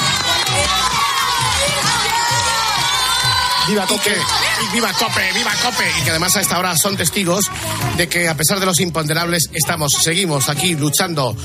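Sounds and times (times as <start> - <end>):
low thumping beat: 0.0 - 9.0
crowd cheering and shouting: 0.0 - 10.8
speech: 3.7 - 11.4.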